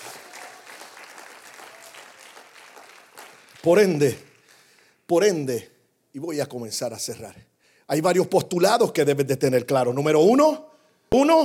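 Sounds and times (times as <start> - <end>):
loud audience applause: 0.0 - 5.0
speech: 3.6 - 4.3, 5.1 - 11.4.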